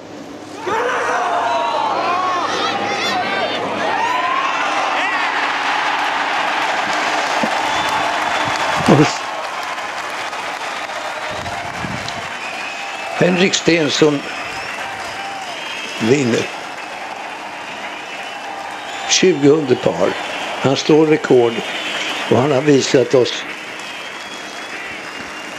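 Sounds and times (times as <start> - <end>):
golf crowd cheering at the 2016 British Open: 0.0 - 25.5
golf crowd clapping: 5.8 - 25.5
crowd whistles: 7.5 - 9.2, 11.8 - 25.5
speech: 9.0 - 9.2, 13.2 - 14.4, 16.0 - 16.6, 19.2 - 23.5.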